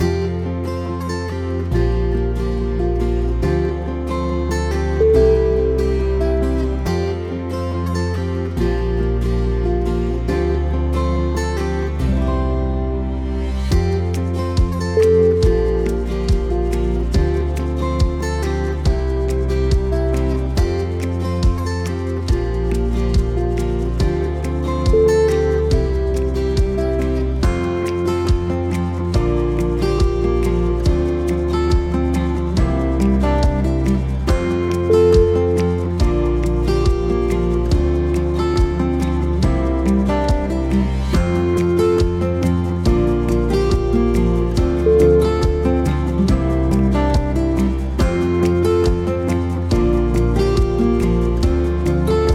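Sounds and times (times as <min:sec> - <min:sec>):
romantic music: 0:00.0 - 0:52.3.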